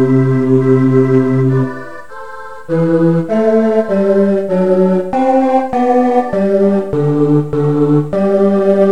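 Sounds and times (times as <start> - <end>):
bass part of a Christmas carol track: 0.0 - 8.9.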